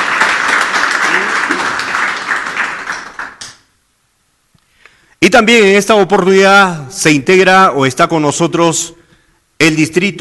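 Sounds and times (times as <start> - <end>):
applause: 0.0 - 3.7
speech: 5.3 - 9.0, 9.6 - 10.1.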